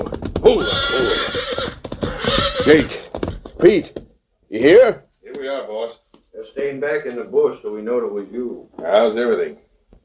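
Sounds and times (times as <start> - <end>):
horse whinnying as its rider reins up in a clearing: 0.0 - 3.6
speech: 0.4 - 1.2, 2.7 - 6.0, 6.6 - 9.6.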